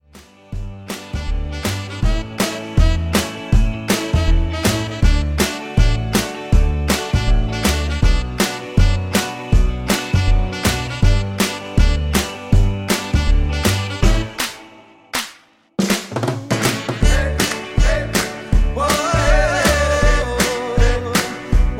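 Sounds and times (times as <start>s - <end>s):
DJ intro and outro music: 0.6s - 14.8s, 15.8s - 21.7s.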